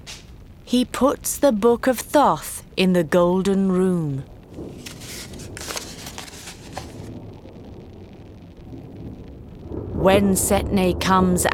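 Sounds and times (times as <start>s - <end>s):
speech: 0.7s - 4.9s, 10.0s - 11.5s
rain storm: 4.3s - 11.5s.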